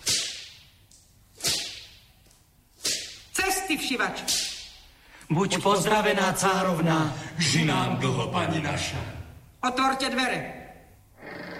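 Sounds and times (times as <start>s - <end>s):
whip whistling through the air and cracking: 0.0s - 2.2s, 2.8s - 3.4s, 4.1s - 4.9s
speech: 3.7s - 4.5s, 5.3s - 10.6s.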